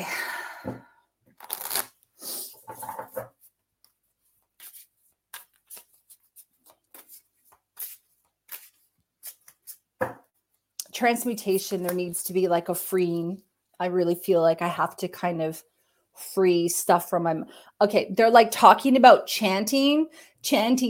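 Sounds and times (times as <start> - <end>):
cards handled and pulled from a deck rustling and slapping: 1.4 - 1.9, 4.4 - 9.9
speech: 11.0 - 20.8.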